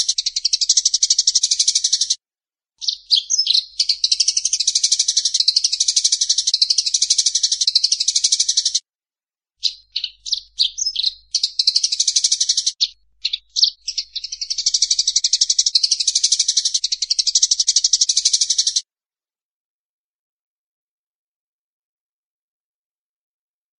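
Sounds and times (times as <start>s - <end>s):
Eurasian tree sparrow chirps: 0.0s - 2.2s, 2.8s - 8.8s, 9.6s - 18.8s.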